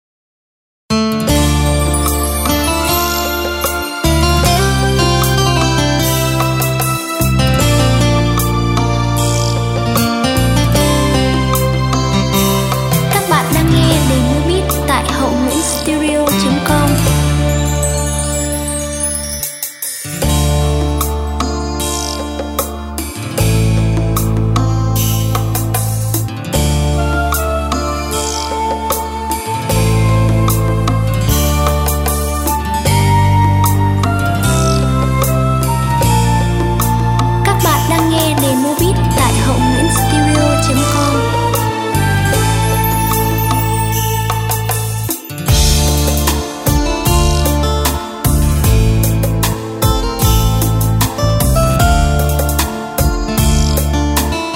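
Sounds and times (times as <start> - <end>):
music beat playback: 1.9 - 54.5.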